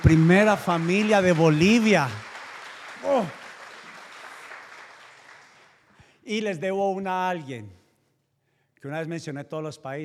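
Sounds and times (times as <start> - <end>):
speech: 0.0 - 2.2, 3.0 - 3.4, 6.3 - 7.8, 8.8 - 10.0
crowd applause: 0.0 - 5.8.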